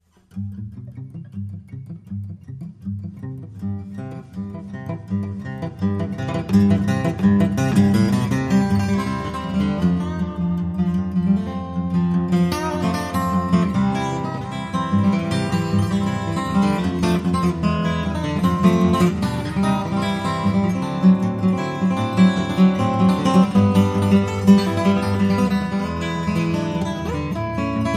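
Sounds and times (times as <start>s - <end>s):
fast guitar: 0.1s - 27.9s.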